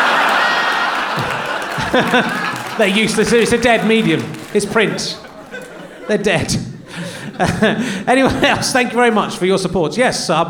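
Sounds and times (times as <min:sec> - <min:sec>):
audience cheering and clapping: 0:00.0 - 0:07.5
laughter: 0:00.0 - 0:10.2
speech: 0:01.9 - 0:05.3, 0:06.1 - 0:10.4.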